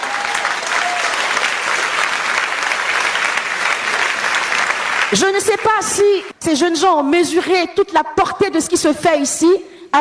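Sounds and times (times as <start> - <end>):
audience applause at a worship gathering: 0.0 - 6.3
speech: 5.1 - 9.9.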